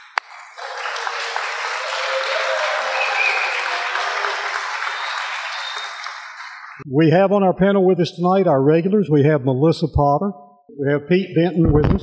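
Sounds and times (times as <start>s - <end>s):
audience applauding in a ballroom: 0.0s - 6.8s
speech: 6.8s - 12.0s.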